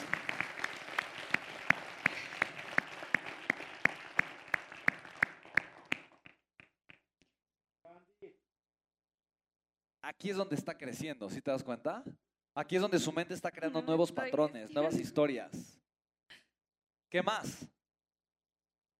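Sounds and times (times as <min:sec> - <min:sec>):
audience applause: 0:00.0 - 0:06.2
speech: 0:10.1 - 0:15.7, 0:17.1 - 0:17.8.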